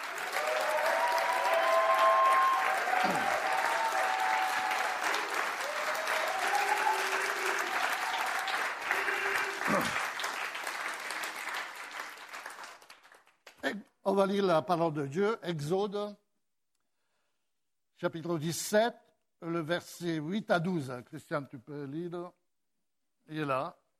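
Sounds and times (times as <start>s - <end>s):
church congregation cheering the name of Jesus: 0.0s - 12.4s
church congregation applauding the name of Jesus: 0.0s - 13.8s
speech: 3.0s - 3.4s, 14.2s - 16.2s, 18.0s - 22.4s, 23.3s - 23.8s.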